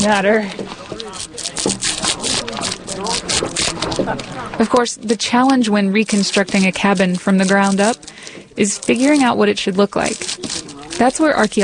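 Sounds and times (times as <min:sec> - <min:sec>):
speech: 0:00.0 - 0:01.3, 0:04.0 - 0:11.6
draw knife shaving bark off a log: 0:00.0 - 0:11.6.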